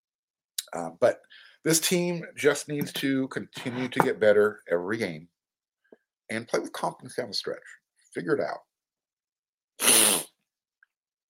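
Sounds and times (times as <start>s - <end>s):
speech: 0.7s - 5.3s, 6.3s - 8.7s
person sniffling: 9.8s - 10.4s.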